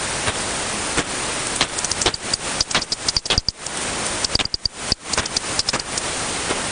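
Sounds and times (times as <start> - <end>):
bat echolocation pops through a bat detector: 0.2 - 6.6.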